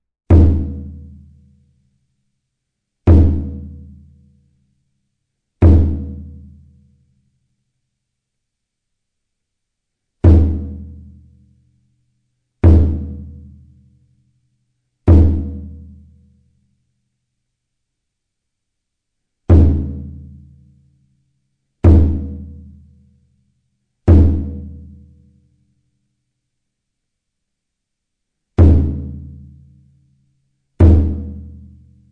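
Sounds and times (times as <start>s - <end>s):
taiko drums: 0.3s - 1.2s, 3.1s - 3.9s, 5.6s - 6.4s, 10.2s - 11.1s, 12.6s - 13.4s, 15.1s - 15.9s, 19.5s - 20.2s, 21.8s - 22.6s, 24.1s - 24.9s, 28.6s - 29.3s, 30.8s - 31.6s.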